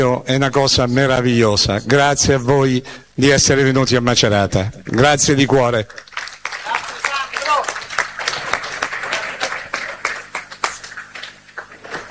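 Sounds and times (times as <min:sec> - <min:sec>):
speech: 0:00.0 - 0:06.0
stadium crowd applauding: 0:04.9 - 0:12.1.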